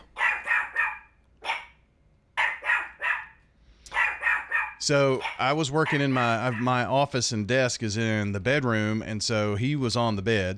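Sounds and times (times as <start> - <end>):
small dog barking: 0.1 - 1.8, 2.4 - 6.8
speech: 4.8 - 10.5.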